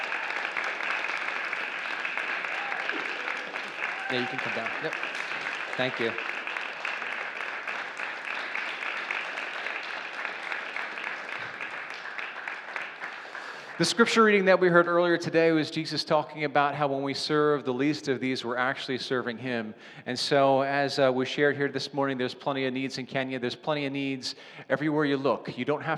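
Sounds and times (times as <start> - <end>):
audience applause: 0.0 - 14.4
speech: 4.1 - 5.2, 5.8 - 6.3, 13.8 - 25.9.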